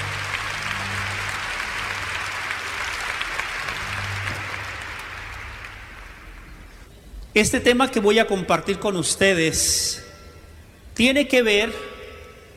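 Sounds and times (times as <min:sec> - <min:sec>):
audience applause: 0:00.0 - 0:06.9
speech: 0:07.4 - 0:10.0, 0:11.0 - 0:11.9.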